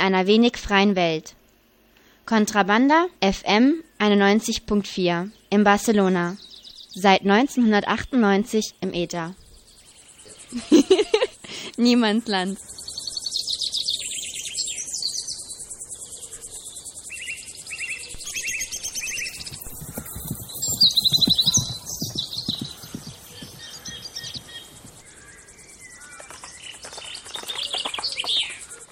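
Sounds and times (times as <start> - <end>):
speech: 0.0 - 1.4, 2.3 - 9.4, 10.5 - 11.1, 11.7 - 12.8
birds chirping in a farmyard: 3.3 - 28.9
laughter: 10.5 - 11.8.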